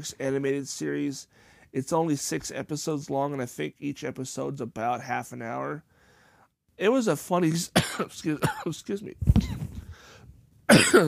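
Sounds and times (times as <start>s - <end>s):
speech: 0.0s - 5.9s, 6.8s - 9.6s, 10.7s - 11.0s
harsh cough: 7.8s - 8.8s, 10.7s - 11.0s.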